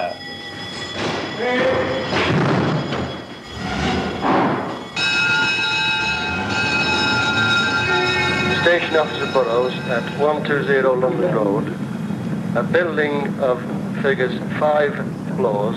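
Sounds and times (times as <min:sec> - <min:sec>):
fire engine horns and bells: 0:00.0 - 0:11.0
speech: 0:08.8 - 0:11.8, 0:12.5 - 0:15.7.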